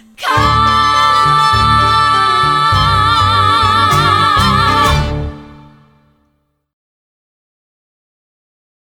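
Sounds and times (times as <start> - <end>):
music mashup: 0.0 - 6.2.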